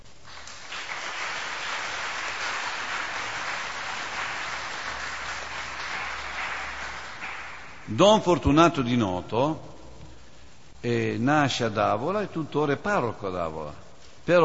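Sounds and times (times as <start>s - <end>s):
audience applause: 0.2s - 7.9s
speech: 7.9s - 9.7s, 10.8s - 14.4s.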